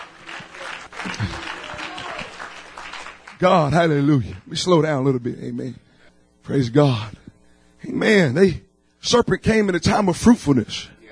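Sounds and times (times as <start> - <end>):
audience clapping: 0.0 - 4.7
speech: 1.0 - 1.6, 3.4 - 5.8, 6.4 - 7.2, 7.8 - 11.0.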